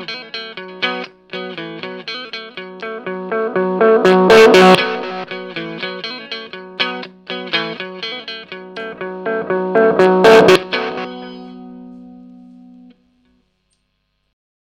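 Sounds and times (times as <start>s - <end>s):
delay swell: 3.1s - 5.6s, 9.4s - 11.6s.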